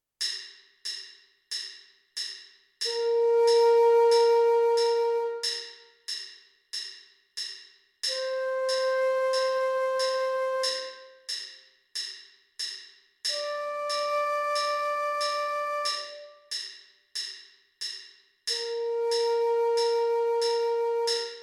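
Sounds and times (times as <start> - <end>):
flute: 2.9 - 5.9, 8.1 - 11.4, 13.3 - 16.6, 18.5 - 21.4.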